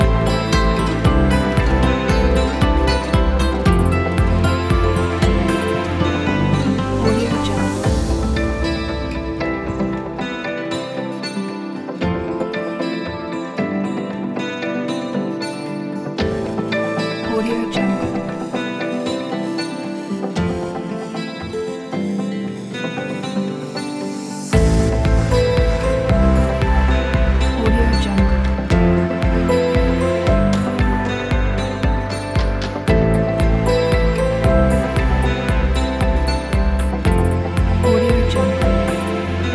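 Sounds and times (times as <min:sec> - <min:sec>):
ambient guitar: 0:00.0 - 0:39.5.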